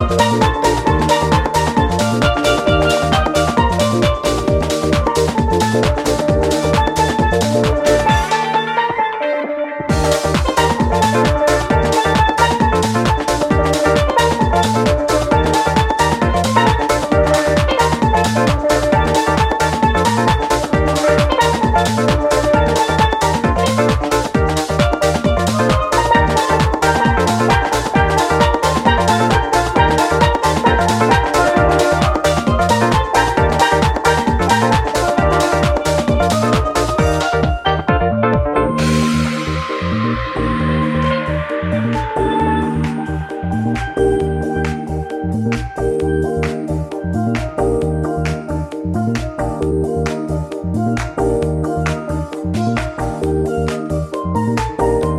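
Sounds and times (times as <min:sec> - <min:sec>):
female contemporary steel pannist playing: 0:00.0 - 0:55.1.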